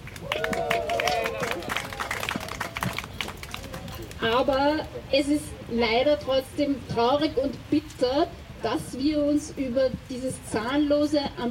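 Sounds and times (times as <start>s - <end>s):
brief audience applause: 0.0s - 4.5s
speech: 4.2s - 11.4s.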